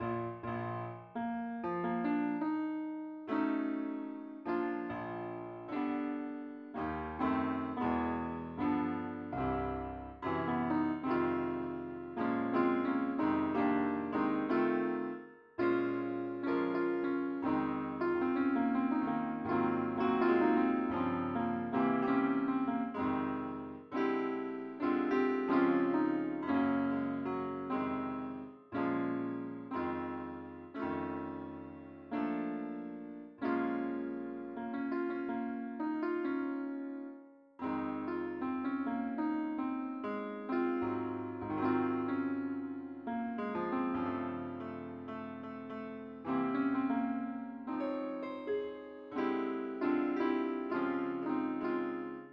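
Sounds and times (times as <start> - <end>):
piano: 0.0 - 52.3.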